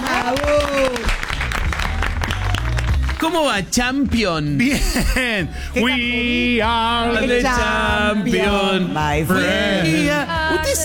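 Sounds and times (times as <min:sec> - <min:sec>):
audience applause: 0:00.0 - 0:03.6
speech: 0:03.2 - 0:10.8.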